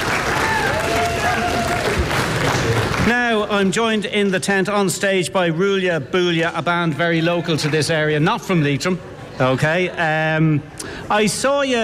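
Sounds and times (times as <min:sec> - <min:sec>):
audience applause: 0:00.0 - 0:03.3
speech: 0:03.1 - 0:11.8.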